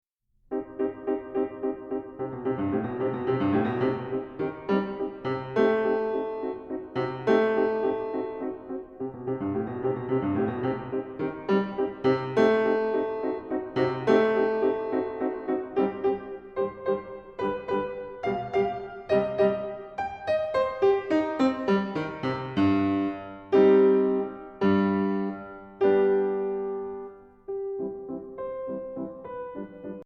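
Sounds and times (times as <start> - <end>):
piano ballade: 0.4 - 30.0.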